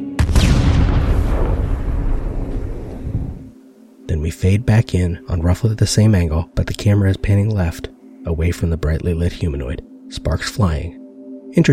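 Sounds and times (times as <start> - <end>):
grenade explosion: 0.2 - 3.5
speech: 4.2 - 11.7.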